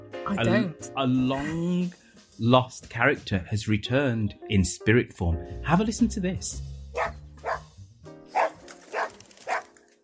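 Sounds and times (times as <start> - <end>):
speech: 0.3 - 7.2
dog barking: 7.0 - 7.7, 8.3 - 9.7.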